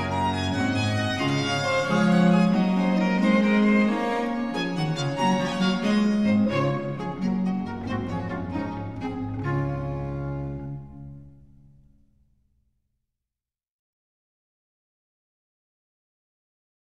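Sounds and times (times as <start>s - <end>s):
trio sonata allegro: 0.0s - 11.9s.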